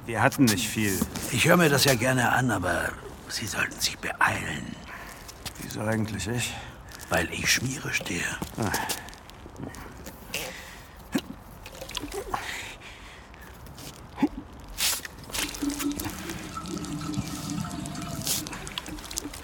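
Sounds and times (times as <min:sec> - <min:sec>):
speech: 0:00.1 - 0:04.9, 0:05.6 - 0:09.8
man urinating: 0:10.4 - 0:12.6, 0:14.7 - 0:19.4.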